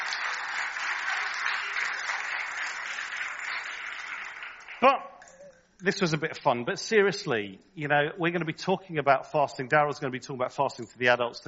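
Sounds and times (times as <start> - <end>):
audience clapping: 0.0 - 5.0
speech: 4.8 - 5.1, 5.8 - 11.4.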